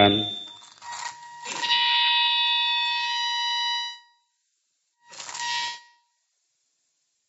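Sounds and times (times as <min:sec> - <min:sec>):
telephone ringing from an incoming call: 0:00.0 - 0:03.3.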